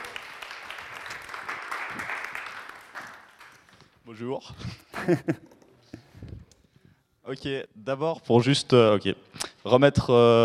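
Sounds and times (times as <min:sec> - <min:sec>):
audience applause: 0:00.0 - 0:03.8
speech: 0:04.1 - 0:05.6, 0:07.3 - 0:10.4.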